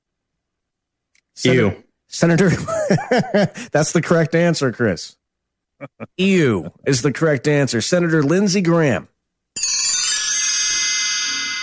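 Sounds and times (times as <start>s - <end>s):
speech: 1.4s - 5.2s, 5.8s - 9.1s
laughter: 2.4s - 3.7s
chime: 9.6s - 11.6s.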